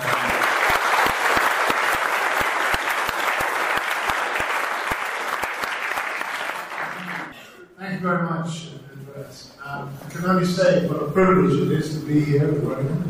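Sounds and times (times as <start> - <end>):
audience applause: 0.0 - 7.3
speech: 10.2 - 13.0.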